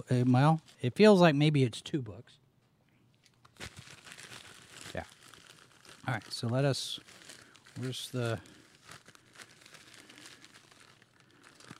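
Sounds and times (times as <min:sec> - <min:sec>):
speech: 0:00.0 - 0:02.4, 0:06.1 - 0:07.2, 0:07.8 - 0:08.6
paper of a big envelope holding books crinkling and rustling: 0:03.2 - 0:11.7.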